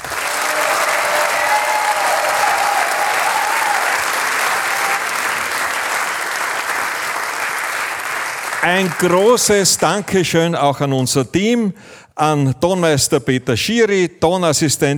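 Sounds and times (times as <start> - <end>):
faint cheers or whistles: 0.0 - 5.4
sustained applause from a large audience: 0.0 - 9.6
speech: 8.6 - 14.9.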